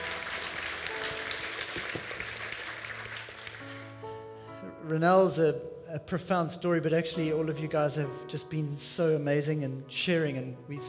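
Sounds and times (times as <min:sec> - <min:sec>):
crowd round of applause: 0:00.0 - 0:04.0
speech: 0:04.9 - 0:10.8.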